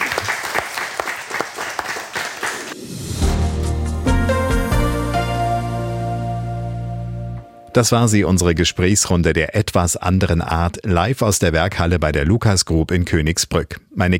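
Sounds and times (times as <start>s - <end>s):
audience applause: 0.0s - 2.8s
loud music track with sustained tones and a strong bass line: 3.1s - 7.6s
speech: 7.8s - 14.1s.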